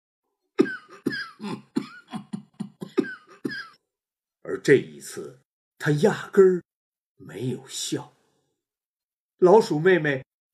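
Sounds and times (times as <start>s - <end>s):
loud coughing: 0.6s - 3.8s
speech: 4.5s - 8.2s, 9.4s - 10.3s.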